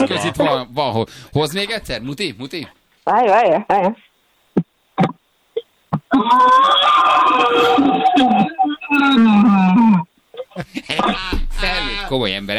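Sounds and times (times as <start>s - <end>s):
laughter: 0.0s - 0.7s, 6.1s - 12.4s
speech: 0.0s - 4.1s, 6.1s - 12.5s
man roaring into a cup inside a pot: 6.1s - 10.1s.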